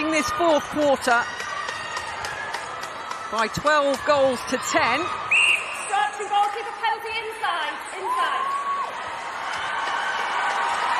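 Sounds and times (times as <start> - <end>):
netball fans cheering inside the Motorpoint Arena: 0.0 - 10.9
speech: 0.2 - 1.4, 3.3 - 5.2
whistle-like tone: 5.3 - 6.0.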